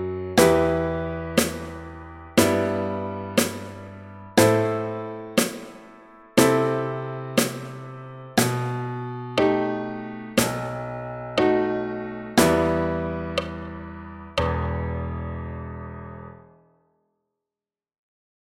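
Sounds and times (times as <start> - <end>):
piano: 0.0 - 16.9
snare drum: 1.4 - 2.8, 3.4 - 4.8, 5.4 - 6.8, 7.4 - 8.7, 10.4 - 10.8.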